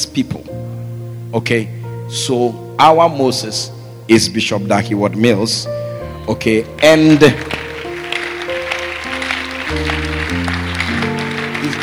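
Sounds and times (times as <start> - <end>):
speech: 0.1 - 0.7, 1.3 - 7.6
audience clapping: 6.8 - 11.8.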